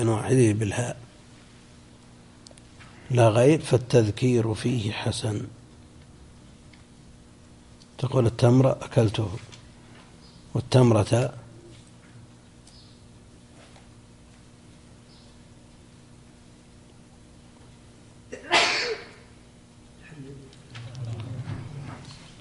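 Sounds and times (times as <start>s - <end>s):
speech: 0.0s - 1.0s, 3.1s - 5.6s, 8.0s - 9.5s, 10.6s - 11.4s
person sneezing: 18.3s - 19.3s.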